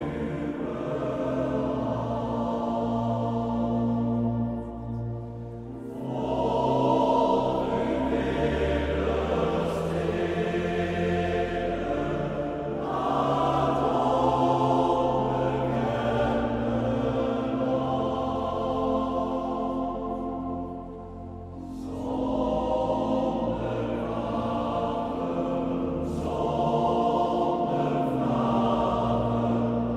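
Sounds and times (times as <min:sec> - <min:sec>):
male choir singing: 0:00.0 - 0:29.9.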